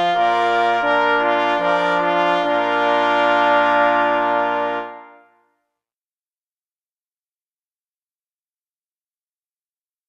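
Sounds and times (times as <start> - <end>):
fanfare: 0.0 - 5.5.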